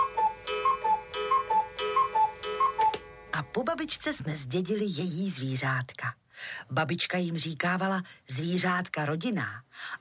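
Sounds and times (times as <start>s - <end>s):
cuckoo clock ticking: 0.0s - 3.0s
speech: 3.6s - 10.0s.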